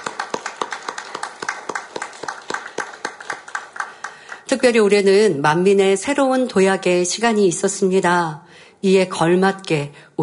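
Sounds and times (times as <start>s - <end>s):
audience applause: 0.0s - 4.5s
speech: 4.5s - 10.2s.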